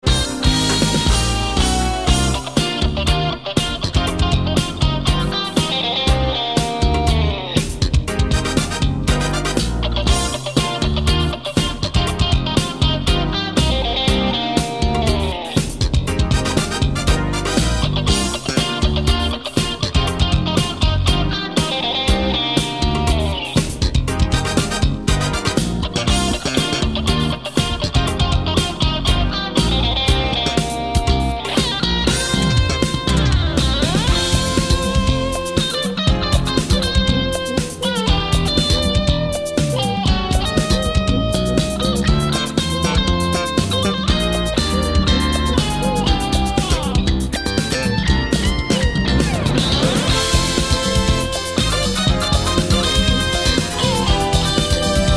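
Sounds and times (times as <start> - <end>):
helicopter groove: 0.0 - 55.1.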